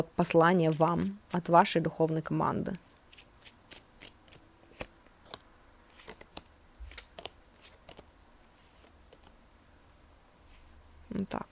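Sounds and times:
speech: 0:00.0 - 0:02.9
cards drawn from a deck: 0:03.0 - 0:08.1.

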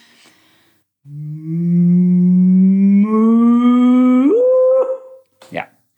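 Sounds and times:
voice imitating a cow's moo: 0:01.1 - 0:05.2.

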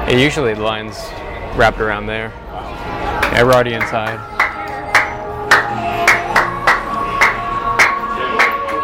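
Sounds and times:
speech: 0:00.1 - 0:02.6, 0:03.3 - 0:04.3
single pair of hands clapping: 0:03.2 - 0:08.8.

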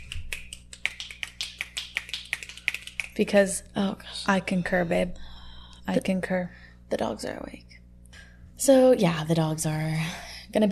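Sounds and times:
crisp finger snapping: 0:00.0 - 0:03.2
low hum: 0:00.0 - 0:10.7
speech: 0:03.2 - 0:05.2, 0:05.9 - 0:07.7, 0:08.6 - 0:10.7.

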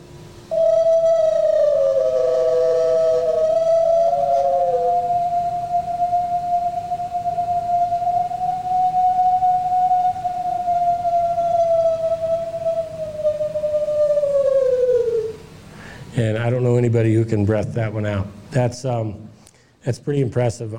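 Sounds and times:
recorded long sustained howl: 0:00.0 - 0:16.0
speech: 0:16.9 - 0:20.7.

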